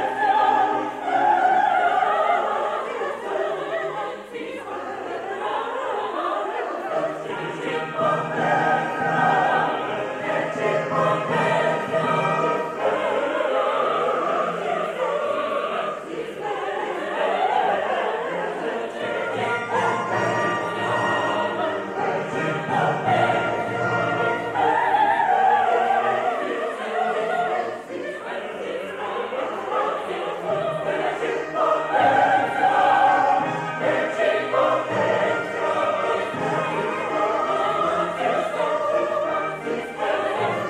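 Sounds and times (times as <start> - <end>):
symphonic choir singing: 0.0 - 40.6
orchestra playing: 7.2 - 14.8, 18.2 - 26.6, 29.0 - 40.6.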